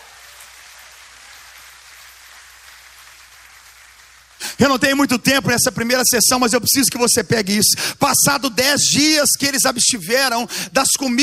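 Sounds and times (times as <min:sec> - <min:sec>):
audience applauding: 0:00.0 - 0:04.9
speech: 0:04.6 - 0:11.2.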